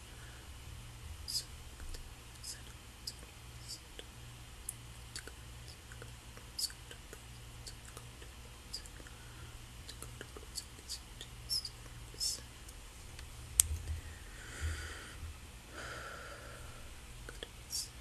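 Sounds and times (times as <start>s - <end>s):
steady low hum: 0.0s - 17.9s
person whispering: 1.3s - 4.1s, 5.1s - 12.6s, 17.3s - 17.9s.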